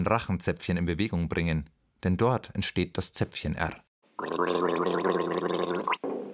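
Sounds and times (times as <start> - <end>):
speech: 0.0 - 6.0
person gargling water in the throat: 4.2 - 6.0.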